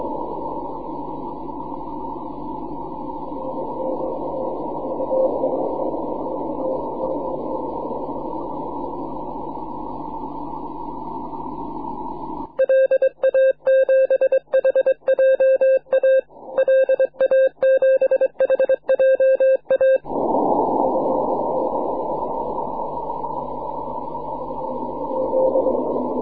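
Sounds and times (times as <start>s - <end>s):
6m continuous wave radio signal: 0.0s - 26.2s.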